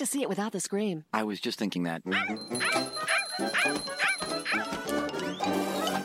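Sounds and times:
speech: 0:00.0 - 0:04.0
poodles barking and yipping: 0:02.1 - 0:06.0.

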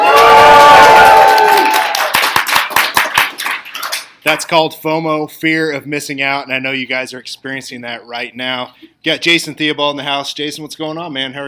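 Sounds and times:
audience cheering at a fitness seminar: 0:00.0 - 0:04.0
scattered clapping: 0:00.2 - 0:04.1
speech: 0:04.3 - 0:11.4.

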